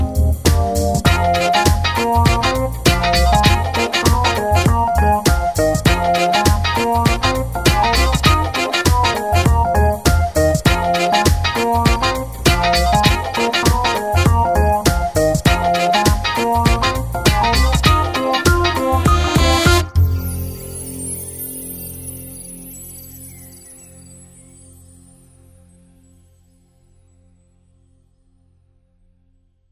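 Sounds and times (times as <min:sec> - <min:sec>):
swing music: 0:00.0 - 0:20.3.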